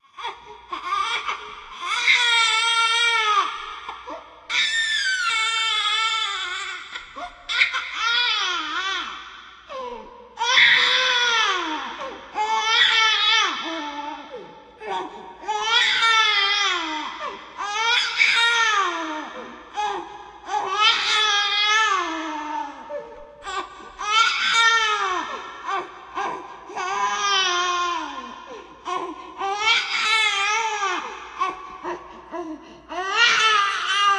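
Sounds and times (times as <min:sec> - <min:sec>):
ambient baby crying: 0:00.2 - 0:09.2, 0:09.8 - 0:34.1.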